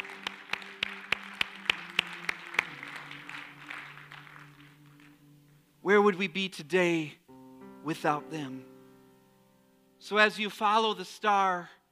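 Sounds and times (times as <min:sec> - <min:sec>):
audience clapping hands: 0:00.0 - 0:05.6
speech: 0:05.9 - 0:07.2, 0:07.8 - 0:08.7, 0:10.0 - 0:11.8.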